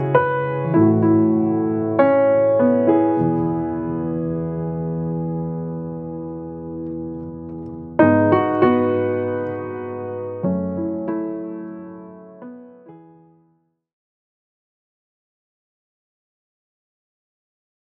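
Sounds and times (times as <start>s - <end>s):
piano cover: 0.0s - 13.6s.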